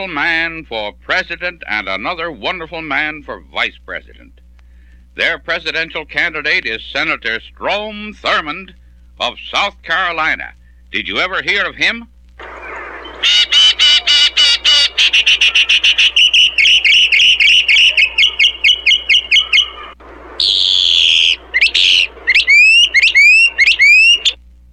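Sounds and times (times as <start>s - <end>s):
speech: 0.0s - 4.4s, 5.2s - 12.6s, 13.2s - 13.9s
pet bird whistling and chirping: 12.6s - 24.4s.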